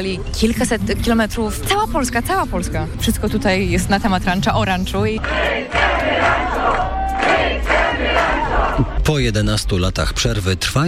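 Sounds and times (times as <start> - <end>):
speech: 0.0 - 7.7, 8.8 - 10.8
crowd of fans singing and chanting: 5.2 - 9.0.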